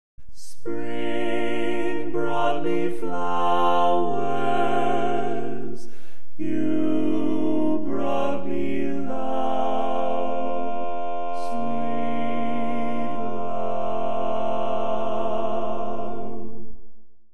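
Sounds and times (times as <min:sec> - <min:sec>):
barbershop tenor singing: 0:00.4 - 0:16.6.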